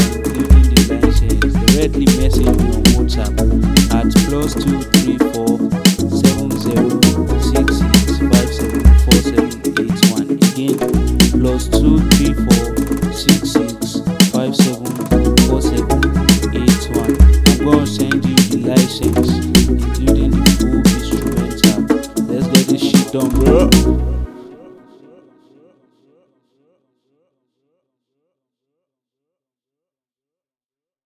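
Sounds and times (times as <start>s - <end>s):
Afro beat: 0.0s - 24.3s.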